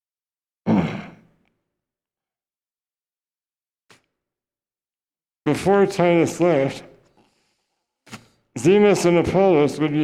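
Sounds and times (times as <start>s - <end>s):
throat clearing: 0.6s - 1.4s
speech: 5.5s - 6.9s, 8.1s - 10.0s.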